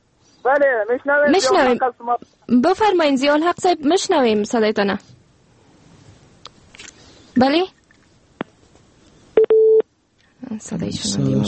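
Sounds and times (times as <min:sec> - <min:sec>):
speech: 0:00.4 - 0:05.1, 0:07.4 - 0:07.8, 0:10.5 - 0:11.4
phone line click after a dropped call: 0:09.4 - 0:09.8.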